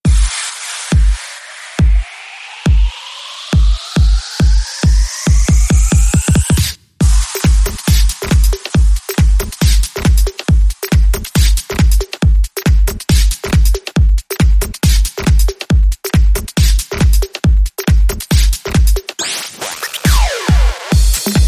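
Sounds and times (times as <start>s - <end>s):
pubstep beat: 0.0s - 21.4s.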